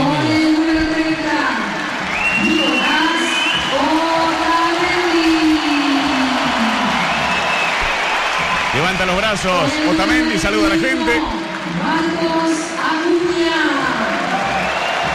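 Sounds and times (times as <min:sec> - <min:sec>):
large stadium crowd applauding: 0:00.0 - 0:15.1
whistles: 0:02.0 - 0:04.0, 0:07.0 - 0:08.2, 0:14.5 - 0:15.1
speech: 0:09.1 - 0:12.7.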